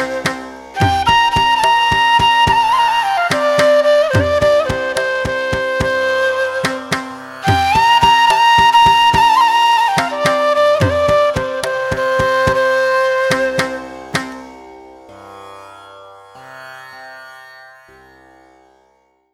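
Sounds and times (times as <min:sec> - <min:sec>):
flute melody: 0:00.0 - 0:14.4.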